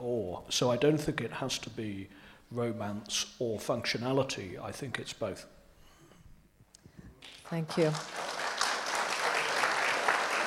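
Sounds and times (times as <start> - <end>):
speech: 0.4 - 5.6, 7.5 - 8.2
audience applause: 7.2 - 10.4.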